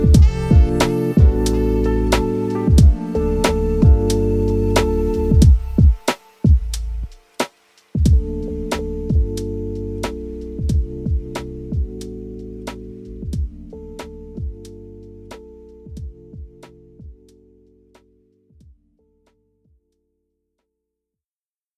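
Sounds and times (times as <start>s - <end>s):
lofi beats: 0.0s - 17.4s.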